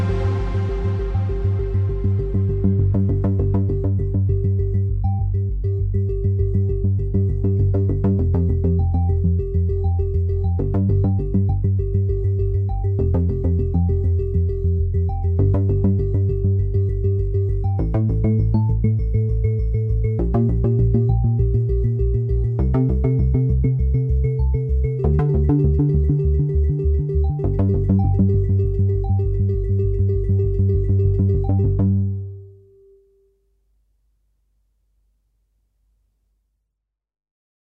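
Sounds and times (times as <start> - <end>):
bass sequence: 0.0 - 33.0.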